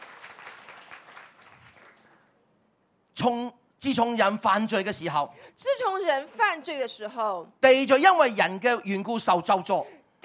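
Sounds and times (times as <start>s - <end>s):
audience applause: 0.0s - 2.4s
speech: 3.2s - 10.2s.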